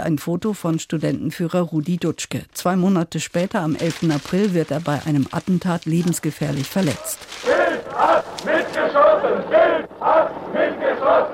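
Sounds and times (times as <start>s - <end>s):
speech: 0.0s - 11.3s
large crowd of demonstrators shouting in unison: 7.0s - 11.3s.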